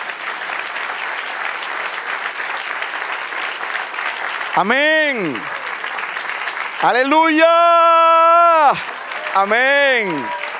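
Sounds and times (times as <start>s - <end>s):
audience applause: 0.0s - 10.5s
speech: 4.6s - 5.6s, 6.8s - 10.4s.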